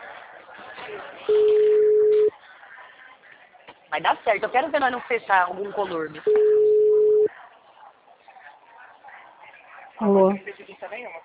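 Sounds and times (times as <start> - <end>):
murmur of talk: 0.0 - 11.2
speech: 0.9 - 1.7, 3.9 - 6.6, 10.0 - 11.2
ringback tone of an outgoing phone call to a client: 1.3 - 2.3, 6.4 - 7.3.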